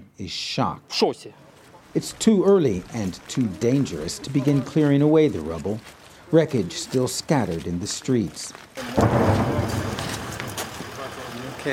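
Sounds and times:
speech: 0.2 - 1.4, 2.0 - 9.8
incoming and outgoing artillery and rocket fire thuds: 9.0 - 11.0.

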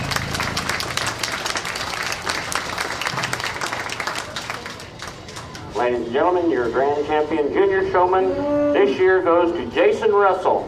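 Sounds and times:
audience applause at livestock show: 0.0 - 5.8
speech: 5.9 - 10.6.

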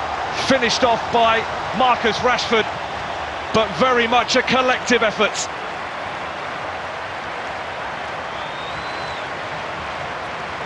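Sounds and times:
stadium crowd applauding a goal at Old Trafford: 0.0 - 10.6
speech: 0.5 - 2.8, 3.5 - 5.6.

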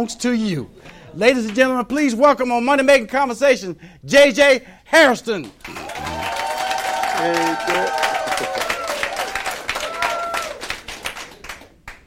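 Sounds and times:
speech: 0.0 - 6.0, 7.2 - 8.5
live crowd clapping and cheering: 5.4 - 12.0.

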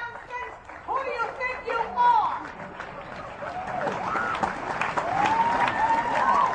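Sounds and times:
audience applause: 0.1 - 6.5
excited high-pitched voices and cheers: 3.1 - 6.5.

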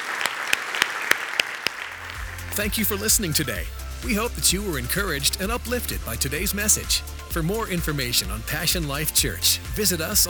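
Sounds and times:
audience applause: 0.0 - 3.3
speech: 2.6 - 10.2.

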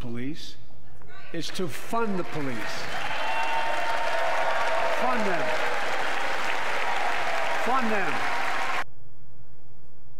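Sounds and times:
speech: 0.0 - 0.7, 1.3 - 3.1, 5.0 - 5.7, 7.6 - 8.4
audience applause: 1.6 - 8.8.

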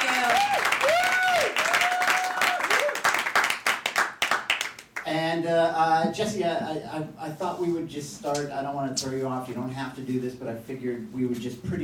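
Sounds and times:
audience applause at a comedy show: 0.0 - 4.8
speech: 5.4 - 11.8.

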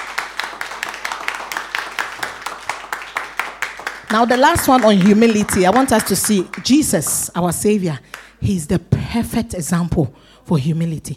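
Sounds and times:
crowd clapping in a steady brisk rhythm: 0.0 - 7.4, 8.0 - 8.4
speech: 4.1 - 11.1.

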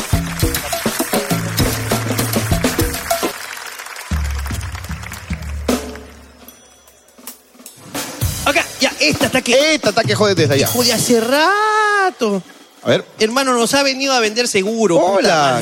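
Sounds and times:
audience applause: 0.0 - 6.5
speech: 9.1 - 15.6.

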